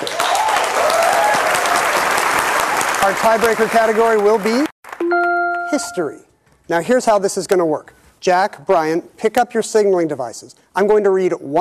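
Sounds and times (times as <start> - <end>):
game show studio audience applause: 0.0 - 5.7
speech: 3.0 - 4.7, 5.7 - 11.6.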